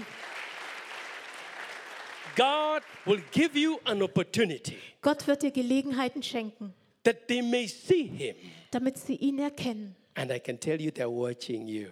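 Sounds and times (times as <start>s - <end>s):
audience applause: 0.0s - 4.0s
speech: 2.4s - 11.8s.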